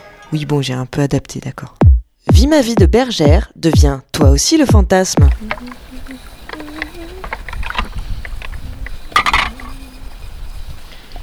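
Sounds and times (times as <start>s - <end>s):
speech: 0.3s - 6.2s
dishes being washed in cold water outdoors: 5.2s - 11.2s
dishes clinking: 5.2s - 11.2s
faint voice murmuring: 5.2s - 11.2s.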